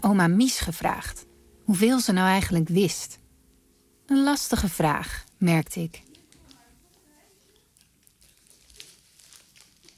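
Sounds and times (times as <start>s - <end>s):
speech: 0.0s - 3.2s, 4.1s - 6.1s
sweet wrappers crinkling: 6.0s - 9.9s.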